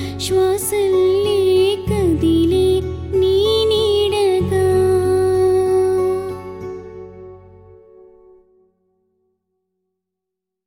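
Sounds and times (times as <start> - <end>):
woman singing: 0.0 - 7.0.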